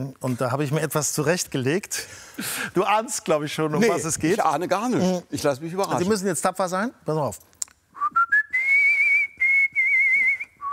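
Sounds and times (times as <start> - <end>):
speech: 0.0 - 7.5
artistic whistling: 7.9 - 10.7.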